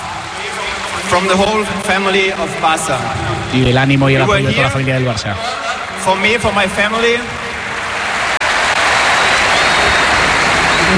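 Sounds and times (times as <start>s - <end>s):
stadium crowd ovation and applause: 0.0s - 2.6s, 5.4s - 10.9s
speech: 1.1s - 7.4s.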